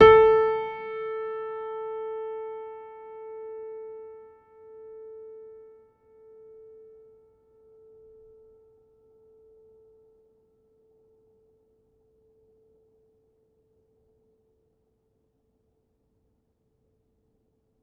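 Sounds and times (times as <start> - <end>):
upright piano: 0.0 - 5.3.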